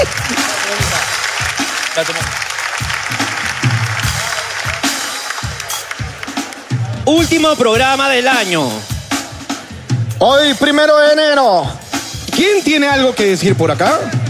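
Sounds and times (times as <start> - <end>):
crowd applause for a guest on a New Year's Day show: 0.0 - 7.7
speech: 2.0 - 2.4, 7.1 - 8.9, 10.2 - 11.8, 12.4 - 14.2.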